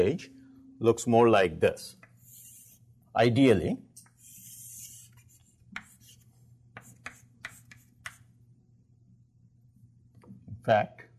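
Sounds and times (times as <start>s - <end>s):
speech: 0.0s - 2.0s, 3.2s - 3.9s, 10.6s - 11.0s
low steady hum: 0.0s - 11.1s
chalk writing on a blackboard drawing a transistor curve: 2.0s - 2.9s, 4.0s - 8.3s.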